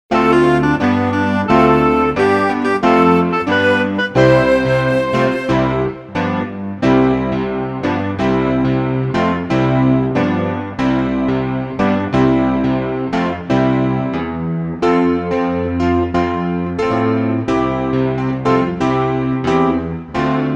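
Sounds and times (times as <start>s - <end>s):
instrumental backing track without melody: 0.1s - 20.5s.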